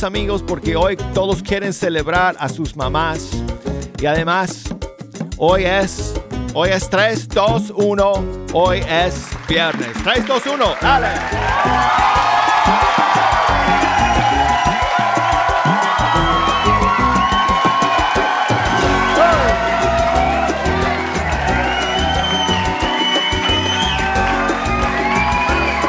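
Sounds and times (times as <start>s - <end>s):
speech: 0.0s - 4.8s, 5.4s - 13.1s
dense steady crowd applause: 9.4s - 25.8s.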